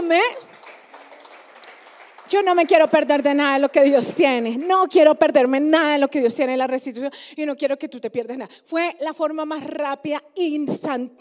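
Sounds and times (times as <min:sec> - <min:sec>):
speech: 0:00.1 - 0:00.4, 0:02.3 - 0:11.1
audience applause: 0:00.2 - 0:03.6.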